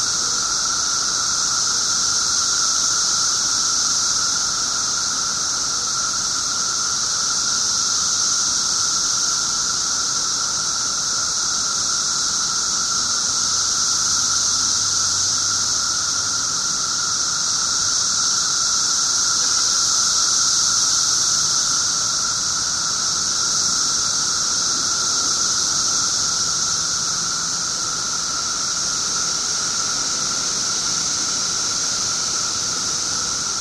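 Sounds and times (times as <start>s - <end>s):
17-year cicada Brood XIII in Glenview IL: 0.0s - 33.5s.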